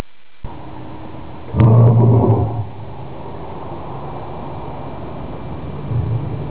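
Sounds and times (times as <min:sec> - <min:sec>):
lion: 0:01.5 - 0:02.9.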